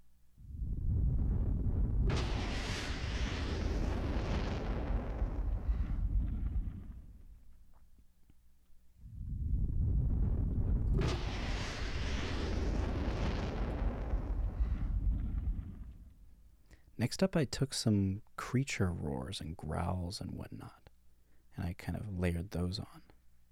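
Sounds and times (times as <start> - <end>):
bursts of flame: 0.4 - 7.6, 9.0 - 16.6
speech: 17.1 - 20.8, 21.6 - 23.1.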